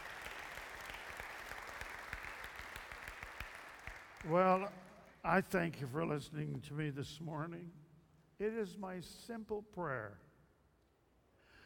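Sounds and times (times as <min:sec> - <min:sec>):
audience clapping: 0:00.0 - 0:05.3
speech: 0:04.2 - 0:07.8, 0:08.4 - 0:10.3.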